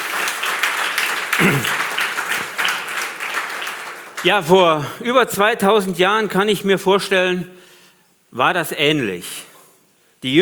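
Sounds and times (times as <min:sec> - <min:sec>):
audience applause: 0:00.0 - 0:04.9
speech: 0:01.4 - 0:01.8, 0:04.2 - 0:07.6, 0:08.3 - 0:09.4, 0:10.2 - 0:10.4.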